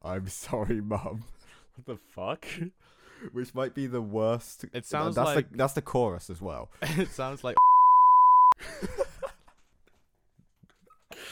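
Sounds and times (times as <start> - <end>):
speech: 0.1 - 7.6, 8.6 - 9.0
censor bleep over swearing: 7.6 - 8.6.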